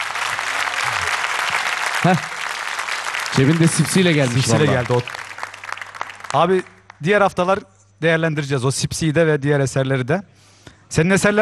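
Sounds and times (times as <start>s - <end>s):
audience applause: 0.0s - 7.0s
speech: 2.0s - 2.4s, 3.3s - 5.2s, 6.3s - 11.4s.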